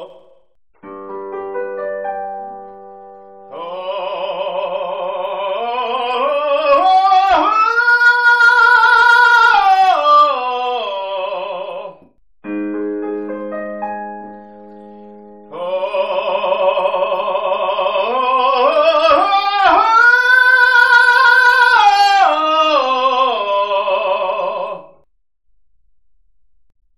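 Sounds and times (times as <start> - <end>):
vocal exercises: 0.0 - 0.6, 3.4 - 12.2, 14.3 - 25.1.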